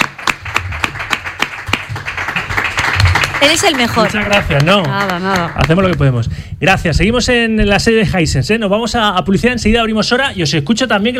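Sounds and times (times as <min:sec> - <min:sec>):
few people clapping: 0:00.0 - 0:06.2
speech: 0:03.4 - 0:11.1.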